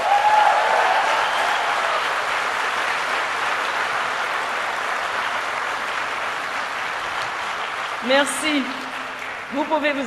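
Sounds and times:
audience applause: 0.0s - 10.0s
speech: 8.1s - 8.8s, 9.5s - 10.0s.

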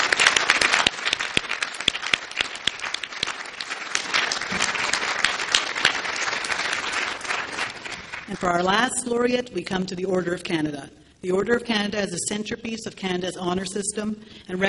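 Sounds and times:
audience applause: 0.0s - 8.4s
speech: 8.4s - 14.6s.

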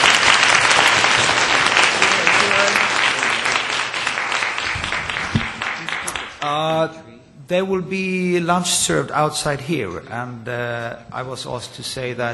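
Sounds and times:
audience applause: 0.0s - 6.6s
speech: 6.8s - 12.3s.

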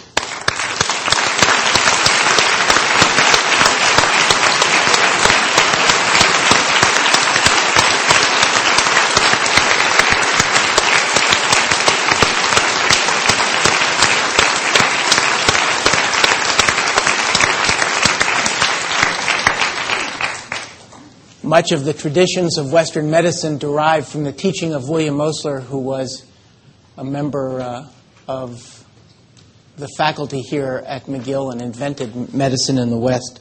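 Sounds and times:
audience applause: 0.1s - 20.9s
speech: 21.6s - 26.3s, 27.0s - 28.8s, 29.8s - 33.3s.

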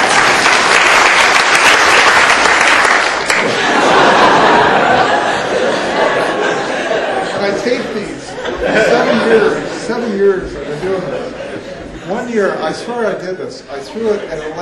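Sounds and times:
audience applause: 0.0s - 7.4s
laughter: 3.2s - 14.5s
speech: 12.4s - 14.5s.

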